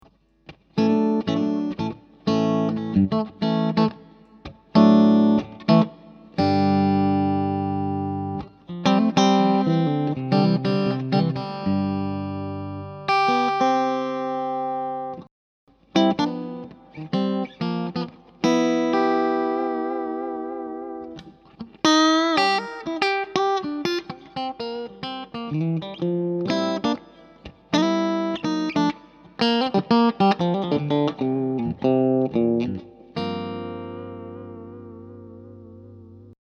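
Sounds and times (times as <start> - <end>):
clean Strat electric guitar in fourth pickup position: 0.0 - 36.4.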